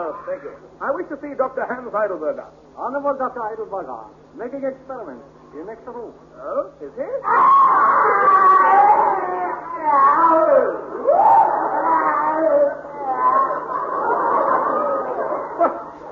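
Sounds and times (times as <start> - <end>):
speech: 0.0 - 11.8
person screaming in pain: 7.2 - 13.6
laughter: 7.8 - 9.6, 10.7 - 16.1.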